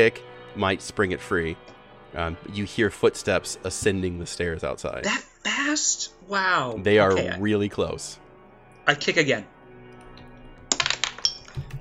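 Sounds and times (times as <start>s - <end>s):
speech: 0.0s - 8.2s, 8.8s - 9.5s
dice clattering across a hard surface: 10.7s - 11.7s.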